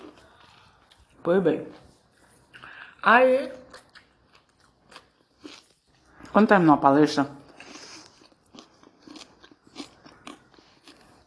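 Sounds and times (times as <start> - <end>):
person chewing crunchy food while talking: 0.0 - 1.2, 3.7 - 6.4, 7.4 - 11.2
speech: 1.2 - 1.8, 3.0 - 3.6, 6.4 - 7.4.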